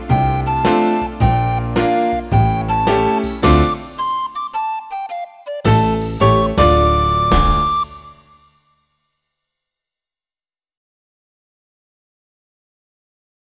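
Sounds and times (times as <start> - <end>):
deep swing music: 0.0 - 8.2.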